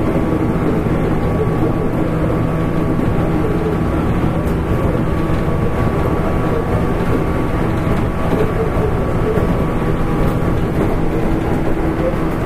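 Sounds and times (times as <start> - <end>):
415 series local train running on the Nagasaki line: 0.0 - 12.4
train clacks and knocks: 4.0 - 12.4.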